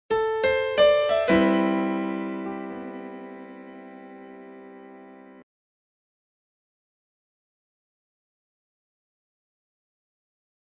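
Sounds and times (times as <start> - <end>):
piano played by an old player at 90 BPM: 0.1 - 5.4.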